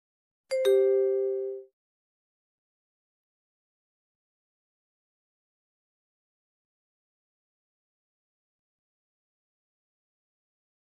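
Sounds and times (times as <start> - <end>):
two-note chime beep: 0.5 - 1.7.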